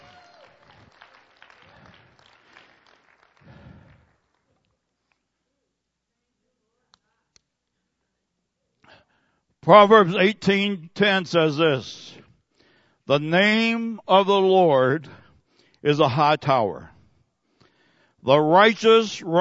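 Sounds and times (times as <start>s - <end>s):
audience clapping: 0.0s - 4.7s
speech: 9.7s - 12.2s, 13.1s - 15.2s, 15.8s - 16.9s, 18.2s - 19.3s.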